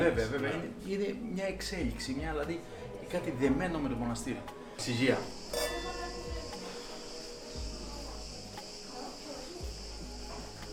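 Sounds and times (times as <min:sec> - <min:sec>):
speech: 0:00.0 - 0:05.6
crickets or insects chirring: 0:04.6 - 0:10.7
monastery bell ringing: 0:05.4 - 0:06.5.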